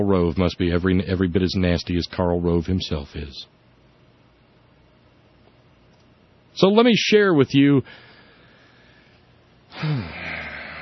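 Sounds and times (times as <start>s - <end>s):
speech: 0.0s - 3.6s, 6.6s - 8.1s, 9.7s - 10.2s
deep gasping breath before reading a quote: 7.8s - 10.7s.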